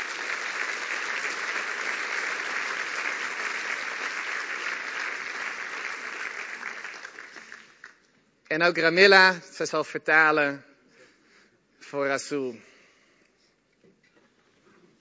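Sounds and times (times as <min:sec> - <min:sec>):
audience applause: 0:00.0 - 0:08.0
speech: 0:08.5 - 0:10.7, 0:11.9 - 0:12.7.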